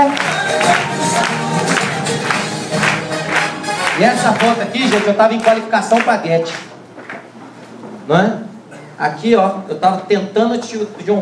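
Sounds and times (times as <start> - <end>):
people cheering: 0.0 - 6.1
audience applause: 0.0 - 7.3
speech: 4.0 - 6.7, 8.1 - 11.1.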